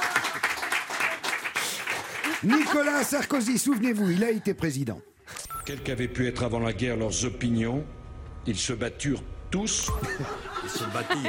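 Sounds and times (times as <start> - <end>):
applause: 0.0 - 4.0
laughter: 2.1 - 4.4, 9.9 - 11.2
speech: 2.4 - 11.2.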